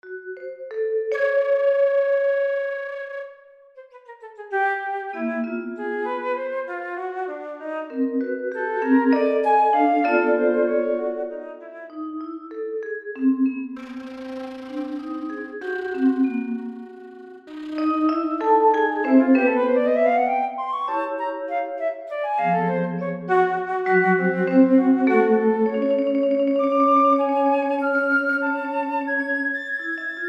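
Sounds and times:
vibraphone: 0.0s - 1.9s, 7.9s - 21.8s, 23.2s - 28.4s
flute etude: 1.1s - 12.0s, 13.8s - 30.2s.

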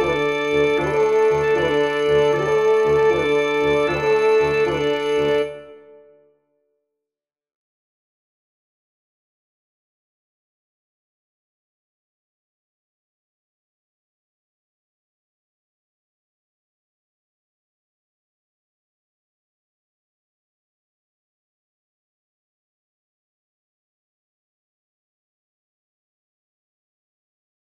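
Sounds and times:
orchestra: 0.0s - 6.1s.

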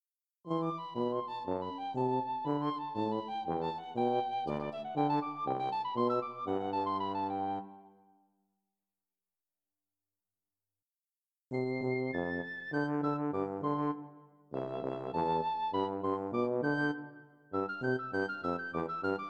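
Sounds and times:
piccolo tuba piece: 0.5s - 8.0s, 11.5s - 19.2s.

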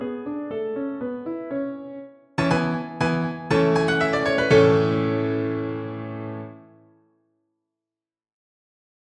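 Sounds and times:
piano: 0.0s - 7.2s.

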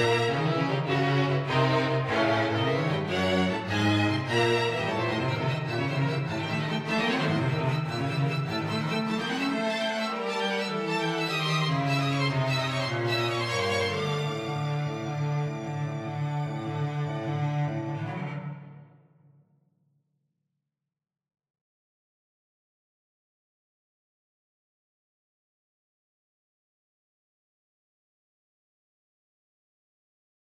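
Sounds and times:
string quartet playing octatonic music: 0.0s - 18.8s.

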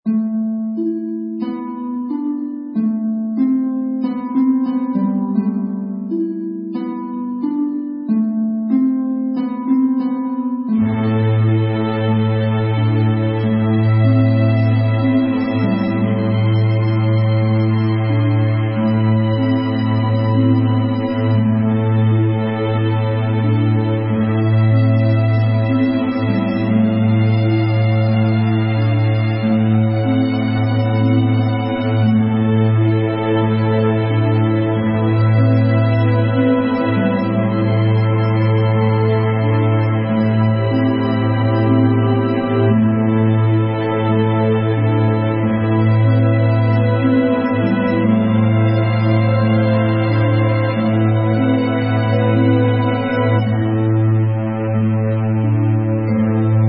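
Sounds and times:
harp: 0.0s - 56.6s.

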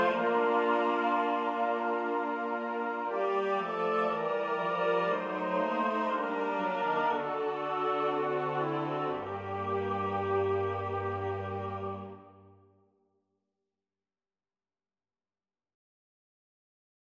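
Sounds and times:
orchestral music: 0.0s - 12.5s.

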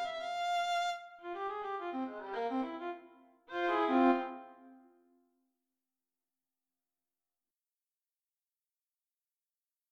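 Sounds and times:
violin playing: 0.0s - 4.8s.

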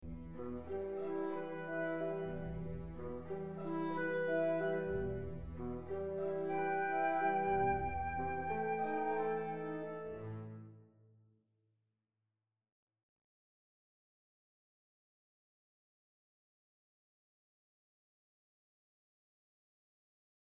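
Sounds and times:
orchestral elegy in E-flat minor: 0.1s - 10.7s.

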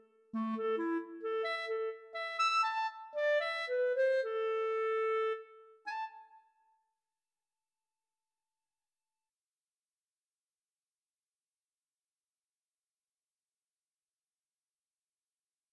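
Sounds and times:
solo clarinet: 0.0s - 6.8s.

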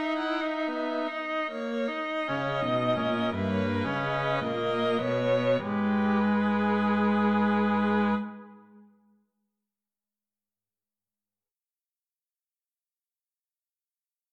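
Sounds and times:
string quartet playing: 0.0s - 8.6s.

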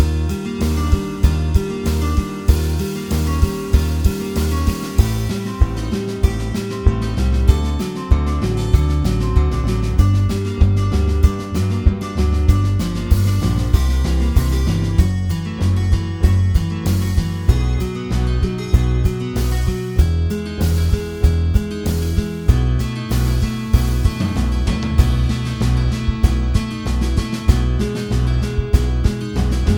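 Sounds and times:
bass: 0.0s - 29.7s
drums: 0.0s - 29.7s
guitar: 0.0s - 29.7s.

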